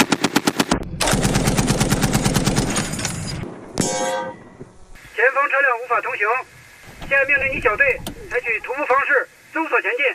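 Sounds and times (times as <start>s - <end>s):
rapid machine-gun fire from troops shooting out of vehicles: 0.0s - 3.9s
speech: 5.4s - 10.1s.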